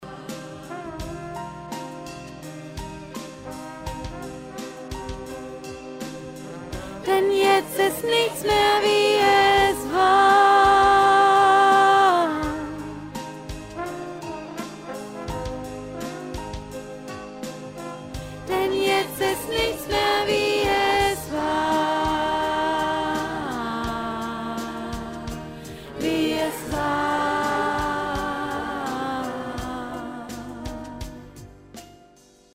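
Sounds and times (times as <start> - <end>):
middle choir voice singing: 0.0 - 1.4, 4.7 - 13.2, 17.8 - 31.3.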